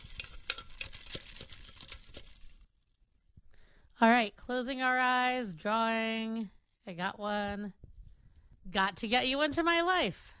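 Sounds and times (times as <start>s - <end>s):
crumpled paper slips mixed in bowl: 0.0s - 2.8s
speech: 4.0s - 7.8s, 8.7s - 10.3s.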